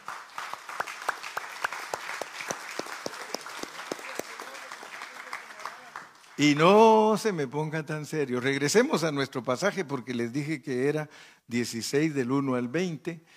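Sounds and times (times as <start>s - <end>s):
group applauding: 0.0s - 7.0s
speech: 6.4s - 13.3s.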